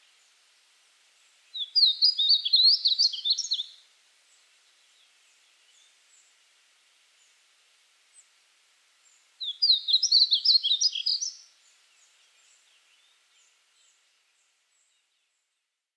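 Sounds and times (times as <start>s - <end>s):
Painted Bunting Passerina ciris ciris calling: 1.6s - 3.8s, 9.4s - 11.5s.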